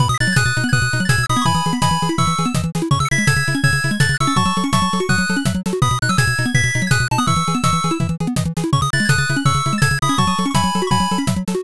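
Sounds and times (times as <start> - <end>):
driving background music: 0.0 - 11.6.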